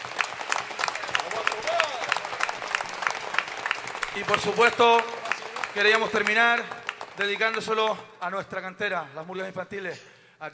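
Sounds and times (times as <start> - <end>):
audience applause: 0.0 - 8.0
speech: 4.2 - 5.2, 5.8 - 10.5.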